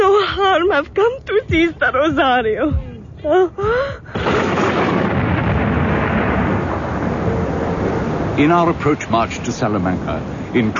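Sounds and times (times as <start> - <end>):
speech: 0.6 - 5.0, 8.4 - 10.7
thunderstorm with thunder claps: 4.1 - 10.3.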